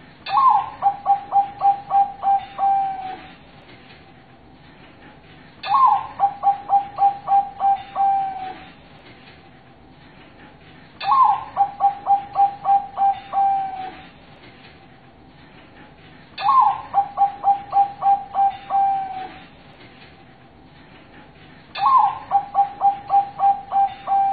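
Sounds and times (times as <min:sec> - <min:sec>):
zebra dove cooing master song: 0:00.3 - 0:03.3, 0:05.6 - 0:08.7, 0:11.0 - 0:14.1, 0:16.4 - 0:19.5, 0:21.8 - 0:24.3.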